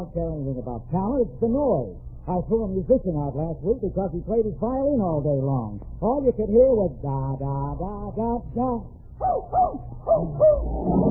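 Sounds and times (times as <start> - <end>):
speech: 0.0 - 11.0
dog howling: 9.2 - 11.0.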